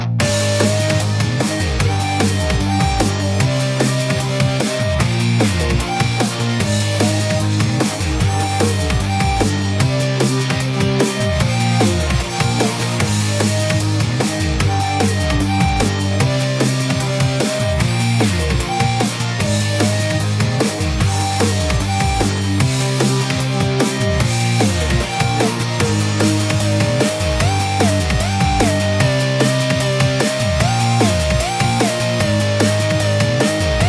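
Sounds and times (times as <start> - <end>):
instrumental music: 0.2 - 33.8.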